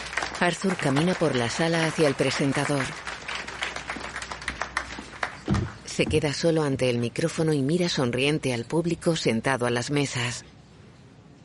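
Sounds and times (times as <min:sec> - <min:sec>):
audience applause: 0:00.0 - 0:05.5
speech: 0:00.4 - 0:03.1, 0:06.0 - 0:10.5.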